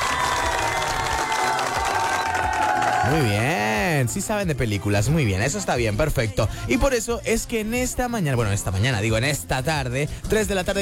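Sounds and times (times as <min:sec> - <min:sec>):
applause: 0:00.0 - 0:03.5
cheering: 0:00.0 - 0:03.6
speech: 0:03.1 - 0:10.8.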